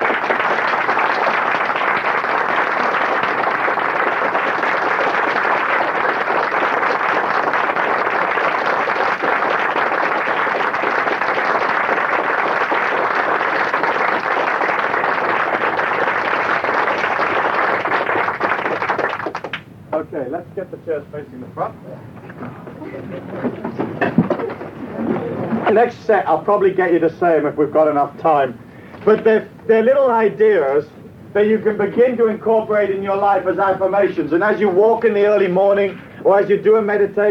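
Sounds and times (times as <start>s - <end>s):
audience clapping as hard as they can: 0.0s - 19.7s, 23.0s - 25.8s
speech: 20.9s - 22.0s, 25.7s - 37.2s.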